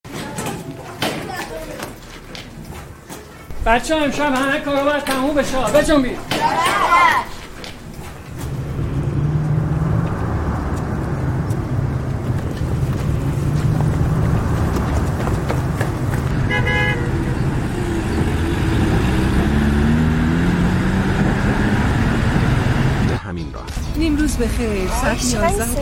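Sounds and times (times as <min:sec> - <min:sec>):
road traffic: 0:00.1 - 0:25.8
speech: 0:03.6 - 0:07.3, 0:24.4 - 0:25.8.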